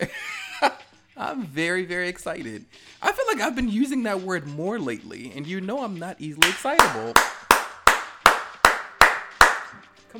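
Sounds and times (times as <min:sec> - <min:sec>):
speech: 0:00.0 - 0:07.4
loud hand clapping: 0:06.4 - 0:09.8.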